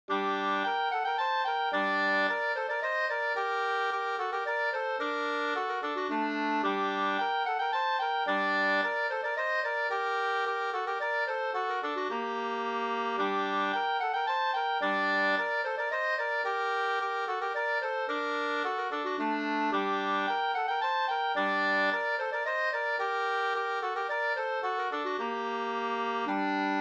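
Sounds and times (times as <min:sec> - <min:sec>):
polska folk dance tune: 0:00.1 - 0:26.7.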